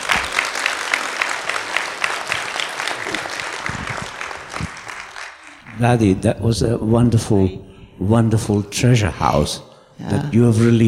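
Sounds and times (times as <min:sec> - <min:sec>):
audience clapping: 0:00.0 - 0:06.4
speech: 0:05.8 - 0:10.8.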